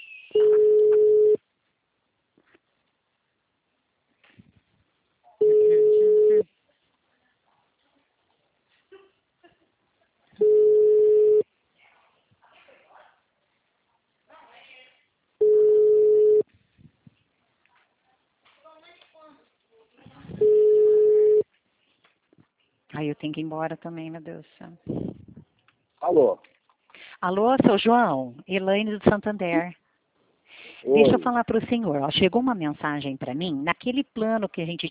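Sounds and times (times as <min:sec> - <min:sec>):
ringback tone of an unanswered phone call: 0:00.4 - 0:01.4, 0:05.4 - 0:06.4, 0:10.4 - 0:11.4, 0:15.4 - 0:16.4, 0:20.4 - 0:21.4
speech: 0:23.0 - 0:25.1, 0:26.1 - 0:26.6, 0:27.2 - 0:29.8, 0:30.8 - 0:34.8.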